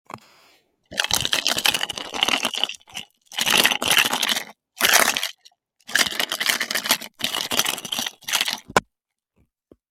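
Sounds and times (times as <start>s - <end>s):
mysterious food sounds: 0.9s - 8.8s.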